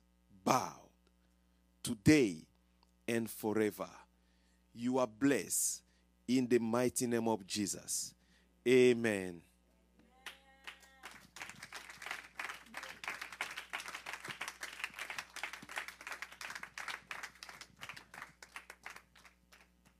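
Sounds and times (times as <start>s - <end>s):
speech: 0.4s - 0.8s, 1.8s - 2.5s, 3.1s - 4.0s, 4.8s - 9.5s
audience clapping: 10.6s - 19.9s.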